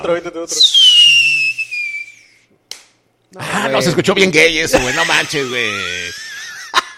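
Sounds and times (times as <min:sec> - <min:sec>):
speech: 0:00.0 - 0:01.2, 0:03.3 - 0:06.3
voice imitating a whistling rocket firework: 0:00.5 - 0:02.4
laughter: 0:04.7 - 0:06.9.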